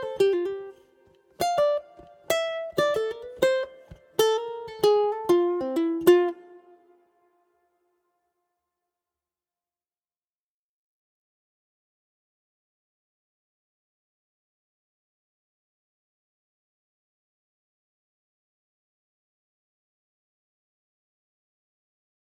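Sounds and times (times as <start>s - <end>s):
ukulele: 0.0s - 7.7s.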